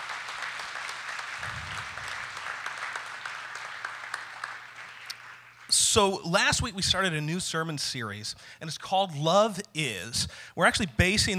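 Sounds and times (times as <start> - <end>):
audience hand clapping: 0.0 - 6.0
speech: 6.0 - 11.3.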